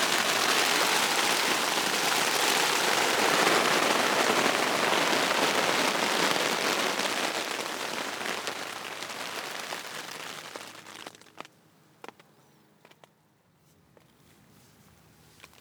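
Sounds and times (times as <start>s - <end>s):
daytime city rain on an awning: 0.0s - 11.3s.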